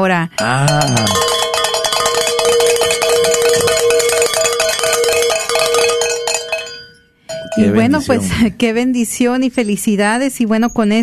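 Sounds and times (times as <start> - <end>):
speech: 0.0 - 1.3, 7.6 - 11.0
bells ringing: 0.4 - 8.4.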